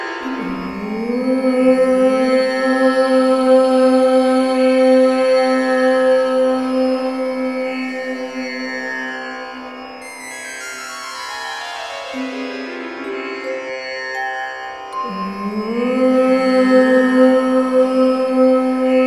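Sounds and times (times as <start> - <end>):
woman chanting om: 0.4 - 10.0, 15.0 - 19.0.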